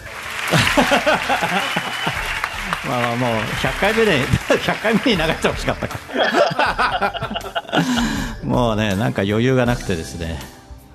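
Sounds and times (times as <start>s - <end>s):
applause sound effect: 0.0s - 7.9s
laughter: 0.0s - 8.4s
speech: 0.5s - 10.6s.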